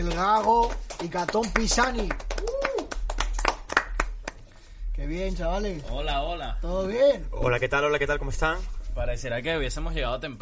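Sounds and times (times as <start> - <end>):
scattered hand claps: 0.0 - 4.4
low steady hum: 0.0 - 10.3
speech: 0.1 - 2.3, 5.1 - 10.3.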